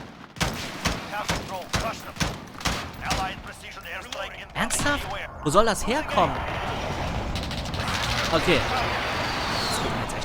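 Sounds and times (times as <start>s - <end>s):
rapid gunfire in the video game Call of Duty: 0.0s - 3.7s, 6.3s - 10.2s
speech: 4.6s - 6.7s, 8.3s - 9.0s.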